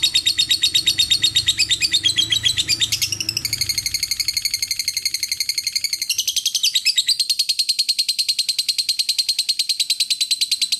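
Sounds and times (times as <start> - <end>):
lovebird giving shrill rapid chirps and squeaks: 0.0 - 10.7.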